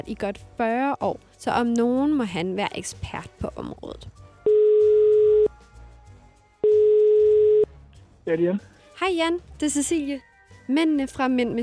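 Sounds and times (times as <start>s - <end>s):
speech: 0.0s - 4.2s, 8.3s - 11.6s
telephone ringing tone during outgoing call: 4.5s - 5.5s, 6.6s - 7.7s.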